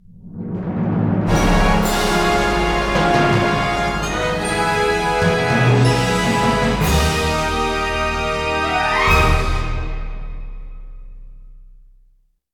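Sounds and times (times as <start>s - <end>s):
win jingle: 1.4s - 10.6s.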